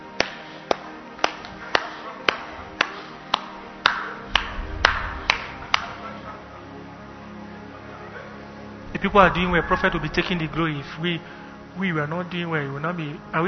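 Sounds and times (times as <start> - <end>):
audience clapping: 0.2 - 6.1
speech: 9.0 - 13.4.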